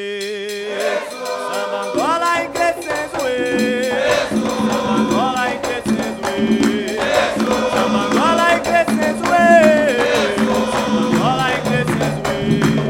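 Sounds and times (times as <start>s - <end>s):
samba music from Angola: 0.1s - 12.8s.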